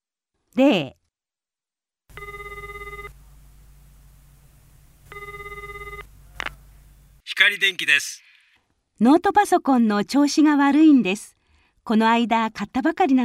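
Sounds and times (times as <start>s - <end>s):
speech: 0.6s - 1.0s, 7.4s - 8.3s, 9.0s - 13.2s
telephone ringing: 2.1s - 3.2s, 5.1s - 6.1s.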